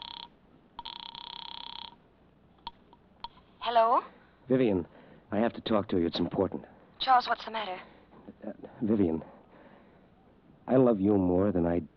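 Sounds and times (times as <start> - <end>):
telephone ringing: 0.0 - 2.0
speech: 3.7 - 9.3, 10.7 - 11.9.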